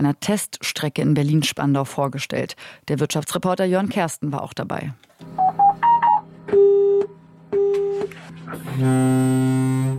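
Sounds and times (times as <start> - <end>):
speech: 0.0 - 6.6, 8.5 - 9.9
dial-tone-like beeps: 5.4 - 7.0
busy signal of automated train start-up: 5.4 - 8.1
low foghorn-like blast as an automated train starts up: 7.6 - 9.9.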